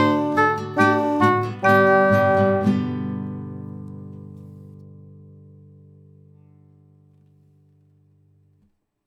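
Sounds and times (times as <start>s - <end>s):
bassoon: 0.0s - 3.4s.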